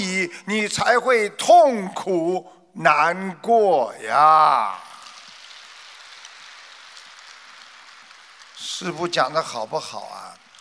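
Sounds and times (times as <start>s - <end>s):
speech: 0.3s - 4.9s, 8.8s - 10.4s
light scattered applause: 4.1s - 10.5s.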